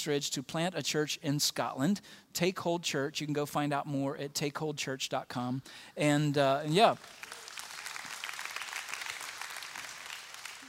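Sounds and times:
speech: 0.0 - 7.4
audience clapping: 6.8 - 10.6.

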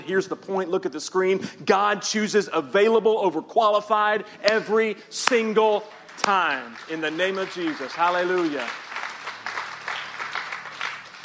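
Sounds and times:
speech: 0.1 - 8.8
audience clapping: 5.2 - 11.2.

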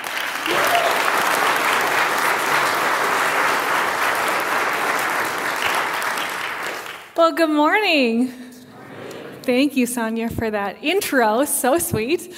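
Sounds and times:
audience applause welcoming a speaker: 0.0 - 7.2
speech: 7.2 - 8.5, 9.5 - 12.3.

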